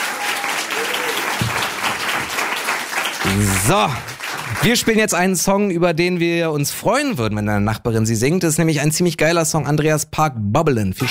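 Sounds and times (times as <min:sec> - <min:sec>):
applause: 0:00.0 - 0:05.2
speech: 0:03.4 - 0:11.0.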